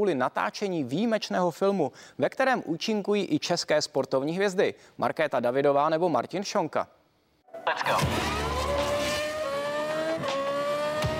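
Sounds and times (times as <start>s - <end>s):
speech: 0.0s - 7.0s, 7.6s - 8.4s
V8 formula racing car engine revving: 7.9s - 11.1s.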